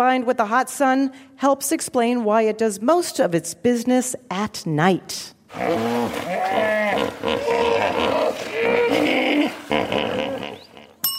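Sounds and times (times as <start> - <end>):
speech: 0.0 - 10.4
hippopotamus roaring in deep grunting bellows: 5.5 - 11.0.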